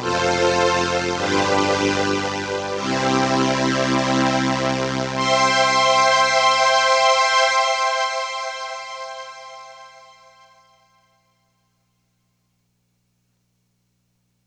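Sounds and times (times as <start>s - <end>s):
cello voice on a Crumar Orchestrator synthesizer: 0.0s - 10.4s.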